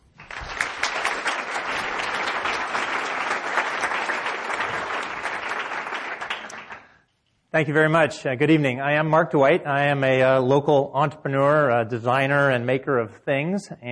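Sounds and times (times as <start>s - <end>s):
audience applauding to welcome a presenter at an evening talk: 0.0s - 7.0s
speech: 7.6s - 13.9s.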